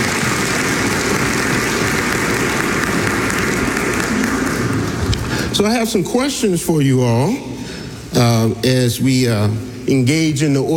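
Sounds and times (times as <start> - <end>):
sustained applause from a large crowd: 0.0 - 5.5
speech: 5.6 - 7.6, 8.2 - 10.7.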